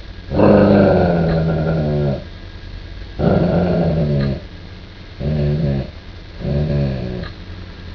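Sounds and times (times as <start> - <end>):
growling: 0.3 - 2.3, 3.2 - 4.5, 5.2 - 7.4.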